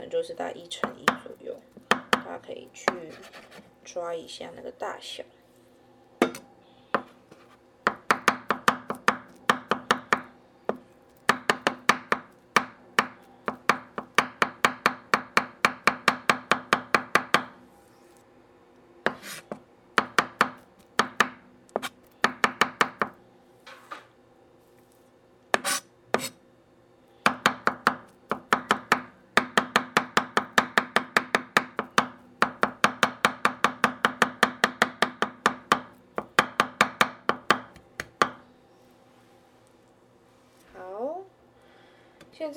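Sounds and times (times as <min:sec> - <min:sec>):
speech: 0:00.1 - 0:01.6, 0:02.3 - 0:05.4
knife chopping salted egg and squid into small pieces: 0:00.8 - 0:03.7, 0:06.2 - 0:17.6, 0:19.1 - 0:23.2, 0:25.5 - 0:26.4, 0:27.2 - 0:38.4.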